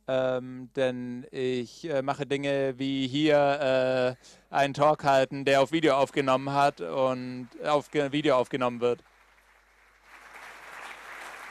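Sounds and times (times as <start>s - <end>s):
speech: 0.1s - 9.1s
audience applause: 6.4s - 11.5s.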